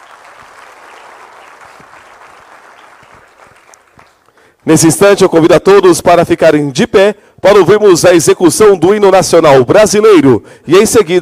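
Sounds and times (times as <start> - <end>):
audience applause: 0.0 - 4.6
speech: 4.6 - 11.2.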